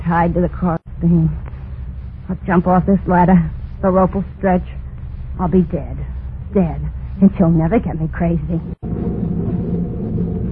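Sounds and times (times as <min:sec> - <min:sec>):
speech: 0:00.1 - 0:01.5, 0:02.3 - 0:04.8, 0:05.4 - 0:09.1
thunder: 0:08.8 - 0:10.5.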